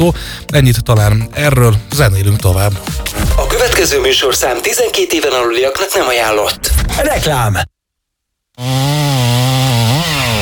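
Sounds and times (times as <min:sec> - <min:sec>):
speech: 0:00.0 - 0:07.8, 0:08.6 - 0:09.0
chainsaw cutting down a giant pine tree in the neighbours' yard: 0:08.6 - 0:10.4.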